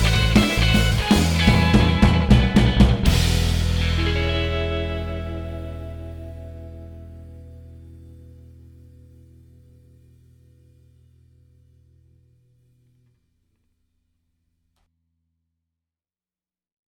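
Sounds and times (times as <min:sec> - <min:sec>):
60s surf rock: 0:00.0 - 0:11.4.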